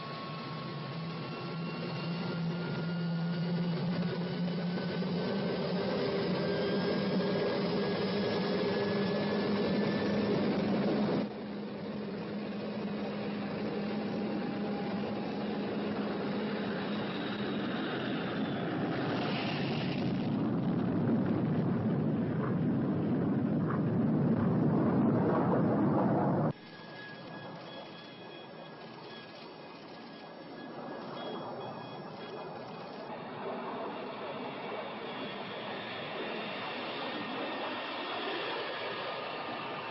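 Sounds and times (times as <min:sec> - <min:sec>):
spacecraft engines roaring during takeoff: 0:00.0 - 0:39.9.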